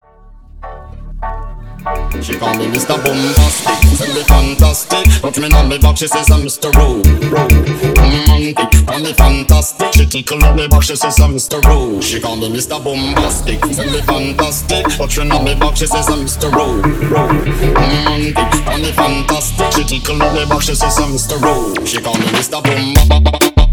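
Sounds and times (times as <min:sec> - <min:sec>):
moombahton intro: 0:01.8 - 0:23.7.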